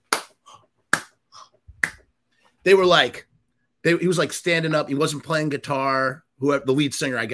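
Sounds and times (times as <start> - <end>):
imitated rhythmic hand clapping: 0.0 - 1.2, 1.8 - 2.1
speech: 2.6 - 7.3.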